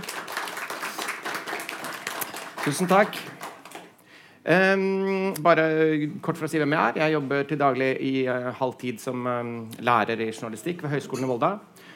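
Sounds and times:
audience giving warm applause: 0.0 - 3.9
speech: 2.6 - 3.4, 4.4 - 11.7.

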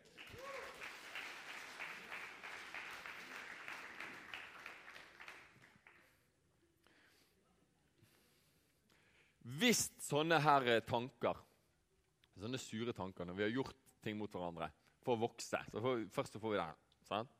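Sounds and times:
audience applause: 0.0 - 6.1
speech: 9.6 - 11.5, 12.4 - 17.3.

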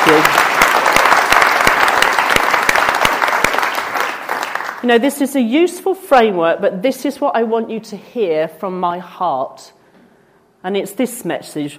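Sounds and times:
crowd clapping: 0.0 - 4.8
speech: 4.8 - 9.8, 10.6 - 11.7.

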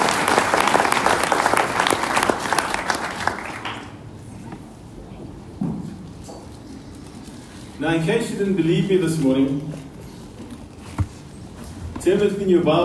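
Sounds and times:
round of applause: 0.0 - 4.2
speech: 7.8 - 9.8, 12.1 - 12.8.

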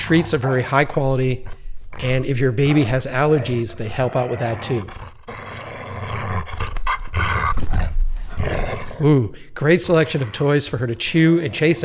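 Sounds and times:
excited dogs panting: 0.0 - 9.0, 9.6 - 11.8
speech: 0.1 - 5.4, 9.0 - 11.8.

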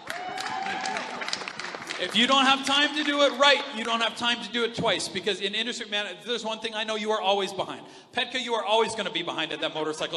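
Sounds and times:
person whooping: 0.0 - 1.4
audience clapping: 0.0 - 4.2
speech: 2.0 - 10.1.

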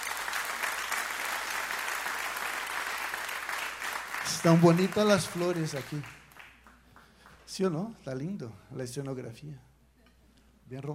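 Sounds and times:
loud audience applause: 0.0 - 7.5
speech: 4.3 - 6.2, 7.5 - 9.7, 10.7 - 10.9.

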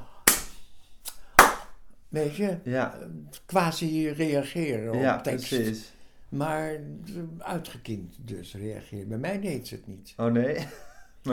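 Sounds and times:
hand clapping: 0.0 - 1.8
speech: 2.1 - 11.3.

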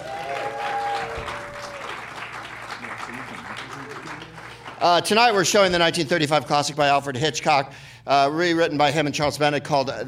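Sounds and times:
high cheer or whistle: 0.0 - 2.3
audience applause: 0.0 - 5.5
speech: 4.8 - 10.0.

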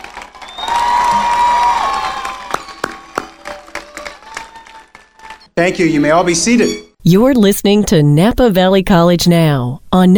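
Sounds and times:
audience applause for college graduates at a Napa Valley College commencement: 0.0 - 5.5
person cheering: 0.4 - 5.4
speech: 5.6 - 10.1.

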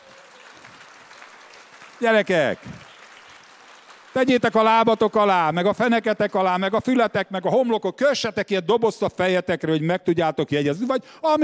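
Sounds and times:
audience clapping: 0.0 - 6.6
speech: 2.0 - 2.9, 4.2 - 11.4.

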